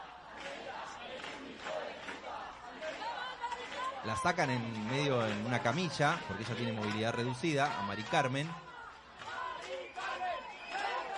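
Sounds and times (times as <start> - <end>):
protest crowd shouting together: 0.0 - 11.1
speech: 4.0 - 8.7.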